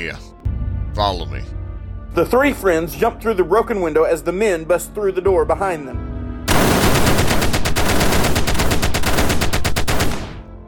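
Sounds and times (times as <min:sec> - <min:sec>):
speech: 0:00.0 - 0:00.3, 0:01.0 - 0:06.1
machine gun fire: 0:06.5 - 0:10.4.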